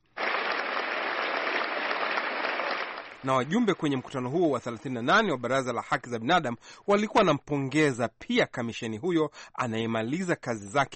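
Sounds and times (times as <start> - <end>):
delegates applauding at the 38th session of the UN Human Rights Council in Geneva: 0.0 - 4.0
speech: 3.2 - 10.9.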